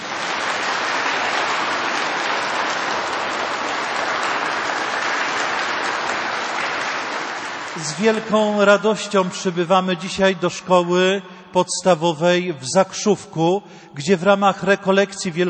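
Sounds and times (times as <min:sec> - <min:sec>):
warm audience applause: 0:00.0 - 0:08.7
speech: 0:07.8 - 0:15.4.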